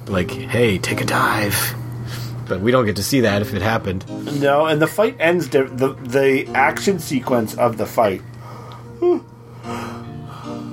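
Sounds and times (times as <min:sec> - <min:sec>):
speech: 0:00.1 - 0:08.3
person yawning: 0:08.9 - 0:10.7.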